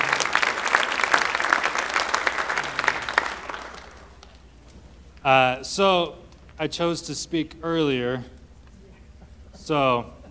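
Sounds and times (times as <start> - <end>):
standing congregation clapping to welcome the last speaker: 0.0 - 4.5
speech: 5.2 - 8.4, 9.6 - 10.2.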